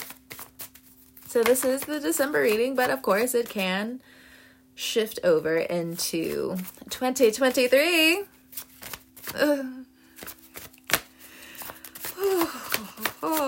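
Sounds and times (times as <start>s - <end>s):
tarot cards shuffling: 0.0s - 3.7s, 5.9s - 13.4s
speech: 1.3s - 4.2s, 4.8s - 8.7s, 9.3s - 9.8s
person sighing and groaning: 9.3s - 10.0s, 12.0s - 13.4s.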